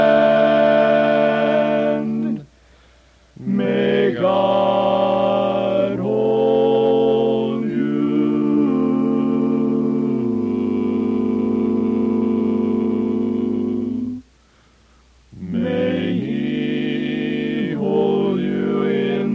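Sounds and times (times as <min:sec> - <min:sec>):
chorus singing a blessing: 0:00.0 - 0:02.5, 0:03.4 - 0:14.2, 0:15.4 - 0:19.3.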